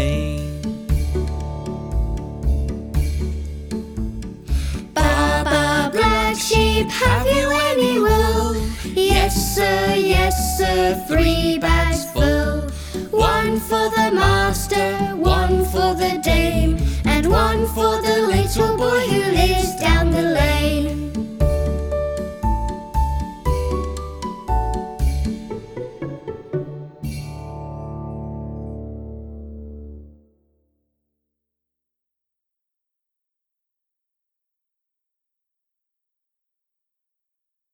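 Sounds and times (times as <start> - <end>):
nursery rhyme: 0.0 - 29.1.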